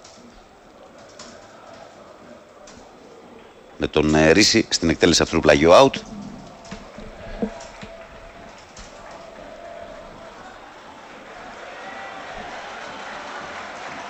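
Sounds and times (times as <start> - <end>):
speech: 3.8 - 6.1
stadium crowd applauding and cheering: 5.8 - 14.0.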